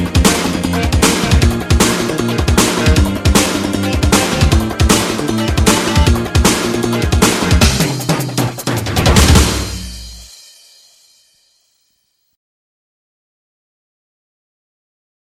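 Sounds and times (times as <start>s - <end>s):
battle game music: 0.0s - 10.5s.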